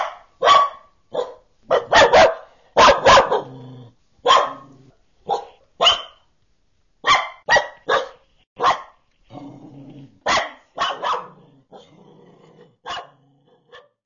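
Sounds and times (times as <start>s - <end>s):
annoying dog barking in nature: 0.0s - 3.6s, 4.2s - 6.3s, 7.0s - 9.0s, 10.2s - 11.9s, 12.8s - 14.0s.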